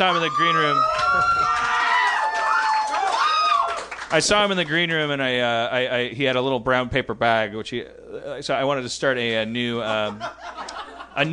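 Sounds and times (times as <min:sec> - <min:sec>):
speech: 0:00.0 - 0:01.7, 0:04.1 - 0:11.3
whoops and cheers: 0:00.0 - 0:04.0
small crowd applauding: 0:00.0 - 0:04.9
laughter: 0:09.7 - 0:11.3.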